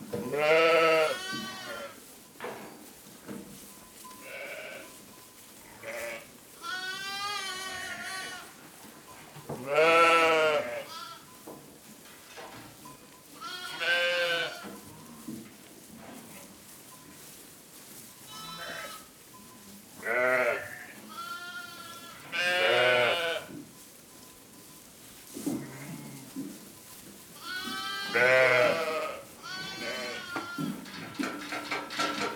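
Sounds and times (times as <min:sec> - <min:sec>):
sheep bleating: 0:00.3 - 0:02.0, 0:05.8 - 0:08.5, 0:09.6 - 0:11.2, 0:13.4 - 0:14.7, 0:18.3 - 0:19.0, 0:20.0 - 0:23.5, 0:25.6 - 0:26.3, 0:27.4 - 0:30.7.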